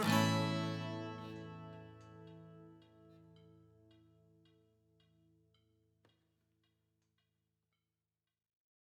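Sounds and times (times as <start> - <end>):
singing voice: 0.0 - 1.0
guitar: 0.0 - 3.9.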